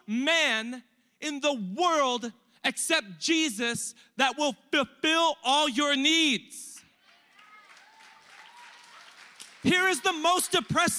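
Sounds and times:
speech: 0.1 - 6.7, 9.6 - 10.9
audience applause: 7.0 - 10.9.

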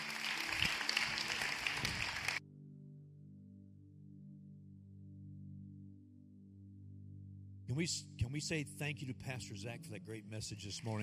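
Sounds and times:
church congregation clapping to welcome new believers: 0.0 - 2.4, 10.6 - 11.0
speech: 7.7 - 11.0.

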